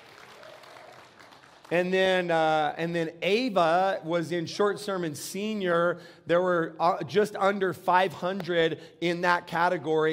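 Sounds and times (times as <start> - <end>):
audience clapping: 0.0 - 2.2
speech: 1.7 - 10.1.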